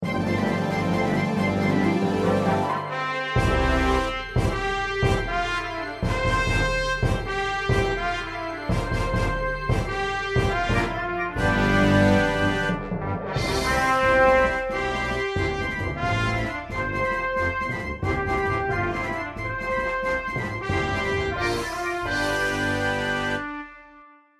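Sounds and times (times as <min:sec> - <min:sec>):
backing track music: 0:00.0 - 0:24.2.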